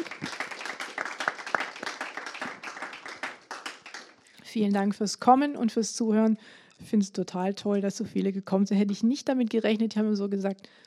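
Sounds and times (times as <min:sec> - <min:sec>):
audience applause: 0:00.0 - 0:04.2
speech: 0:04.5 - 0:10.8.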